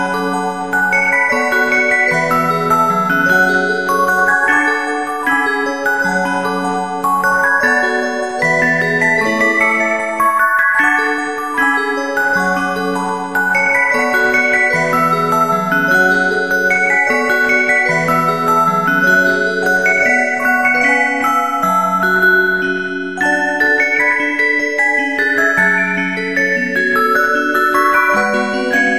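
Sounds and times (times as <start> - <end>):
music box: 0.0 - 28.9.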